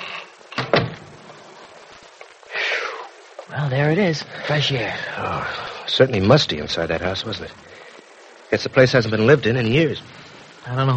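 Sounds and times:
door being closed: 0.5 - 1.2
speech: 3.5 - 7.8, 8.5 - 10.9.

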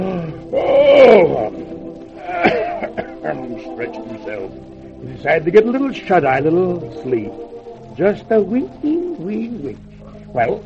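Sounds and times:
person yawning: 0.0 - 1.6, 2.2 - 3.2
speech: 3.5 - 10.6.

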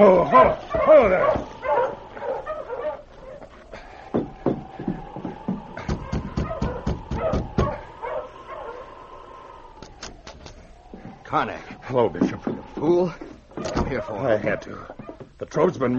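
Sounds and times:
speech: 0.0 - 1.6, 11.3 - 13.3, 13.9 - 15.9
sled dogs barking: 0.0 - 9.8, 11.2 - 15.3
whining howl: 0.0 - 15.3.

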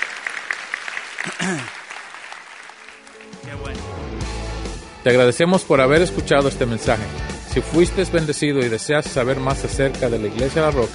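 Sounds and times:
audience applauding: 0.0 - 3.8
speech: 1.4 - 1.8, 5.0 - 10.9.

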